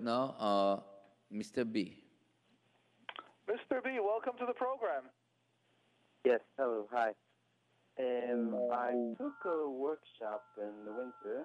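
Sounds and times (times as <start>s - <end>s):
speech: 0.0s - 2.0s, 3.5s - 5.2s, 6.2s - 7.2s, 8.0s - 11.4s
phone call audio breaking up: 8.1s - 11.4s.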